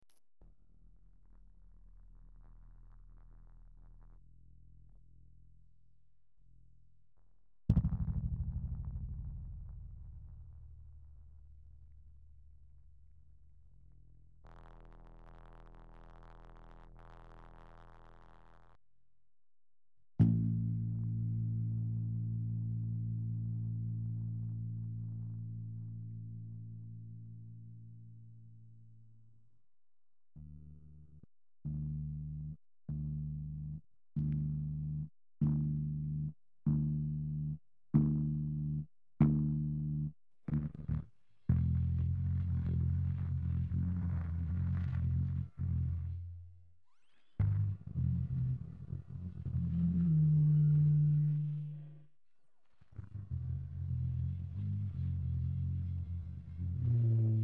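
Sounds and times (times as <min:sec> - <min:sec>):
bass: 0:00.0 - 0:18.8, 0:20.0 - 0:57.4.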